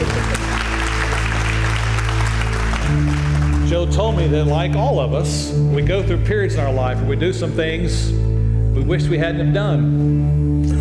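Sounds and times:
audience clapping: 0.0 - 4.8
speech: 3.8 - 10.7.

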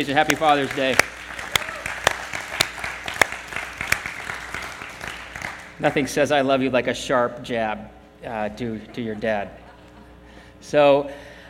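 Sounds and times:
speech: 0.0 - 1.2, 5.8 - 9.6, 10.6 - 11.3
audience applause: 0.0 - 5.8.

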